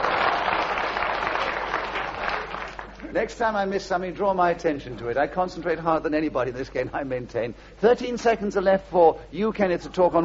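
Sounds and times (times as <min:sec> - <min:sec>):
audience clapping: 0:00.0 - 0:03.4
speech: 0:03.1 - 0:10.2.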